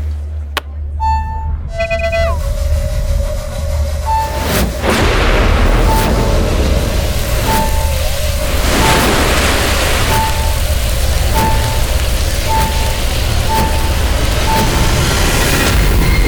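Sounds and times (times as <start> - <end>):
loud steady rumbling hum of a magic portal: 0.0 - 16.2
deep boom: 0.8 - 16.2
short high tone pulsing: 1.0 - 16.2
bright chiming burst: 4.1 - 16.2.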